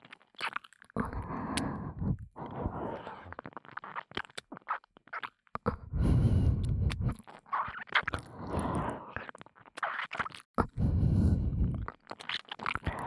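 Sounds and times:
ear licking: 0:00.4 - 0:13.0
heavy breathing: 0:01.1 - 0:03.4, 0:05.7 - 0:07.2, 0:08.2 - 0:09.2, 0:10.6 - 0:11.9, 0:12.8 - 0:13.0.

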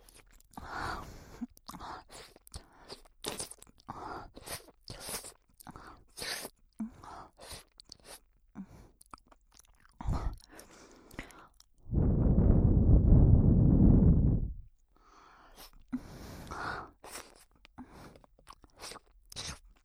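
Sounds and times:
erotic breathing: 0:10.0 - 0:10.6, 0:11.8 - 0:16.6.

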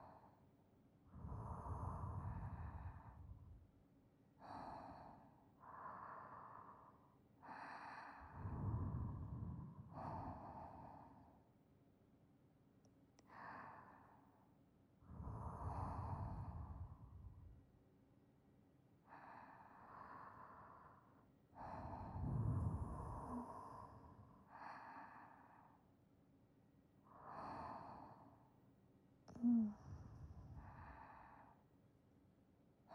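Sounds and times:
sleeping breath beside listener: 0:01.1 - 0:03.6, 0:04.4 - 0:11.5, 0:15.1 - 0:17.6, 0:19.0 - 0:25.9, 0:27.1 - 0:28.6, 0:29.3 - 0:31.7.

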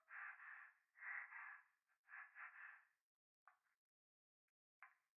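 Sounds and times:
breathing in a bath: 0:00.1 - 0:02.9.

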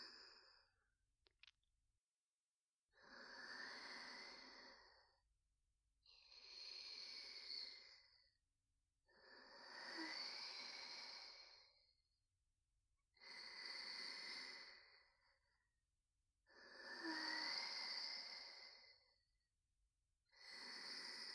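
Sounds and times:
person breathing in sleep: 0:00.0 - 0:00.8, 0:03.0 - 0:05.2, 0:06.1 - 0:08.4, 0:09.1 - 0:12.0, 0:13.2 - 0:15.6, 0:16.5 - 0:19.2, 0:20.3 - 0:21.3.

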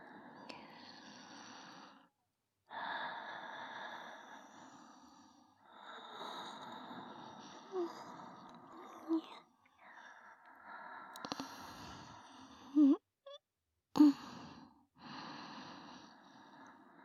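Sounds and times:
sleeping breathing: 0:02.7 - 0:13.0, 0:14.0 - 0:17.0.

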